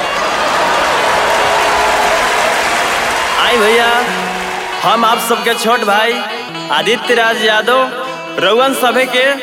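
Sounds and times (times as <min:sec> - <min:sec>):
audience applause at a Devi Jagran devotional event welcoming a Bhojpuri singer: 0:00.0 - 0:05.7
speech: 0:04.8 - 0:09.4.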